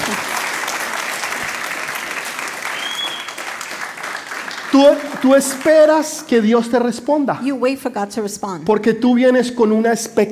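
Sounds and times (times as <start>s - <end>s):
crowd applauding in a large room: 0.0s - 6.3s
speech: 4.8s - 10.3s.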